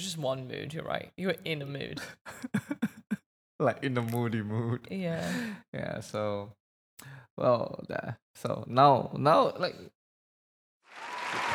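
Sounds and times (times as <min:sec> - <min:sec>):
speech: 0:00.2 - 0:02.9, 0:03.6 - 0:10.0
applause sound effect of a crowd clapping: 0:10.9 - 0:11.5.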